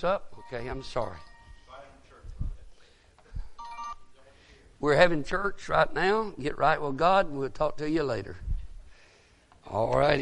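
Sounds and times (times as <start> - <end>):
speech: 0.0 - 1.3, 4.8 - 8.5, 9.7 - 10.1
phone electronic ringtone during a church service: 0.4 - 1.7, 3.6 - 4.0.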